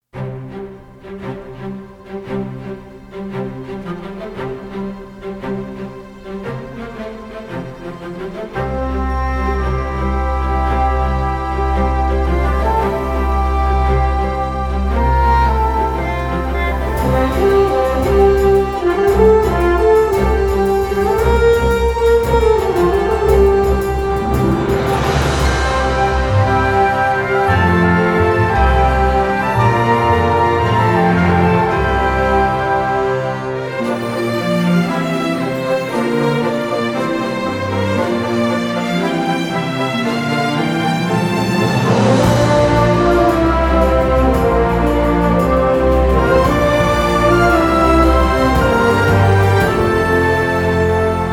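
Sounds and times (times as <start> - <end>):
orchestral theme: 0.0 - 51.3.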